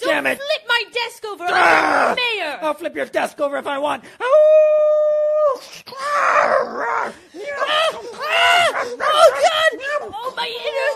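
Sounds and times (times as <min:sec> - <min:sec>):
speech: 0:00.2 - 0:10.9
werewolf howl with snarling cries: 0:06.1 - 0:10.1.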